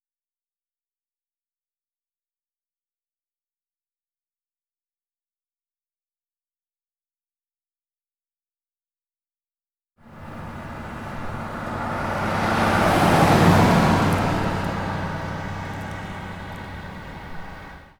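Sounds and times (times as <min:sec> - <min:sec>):
car passing: 0:10.0 - 0:17.9.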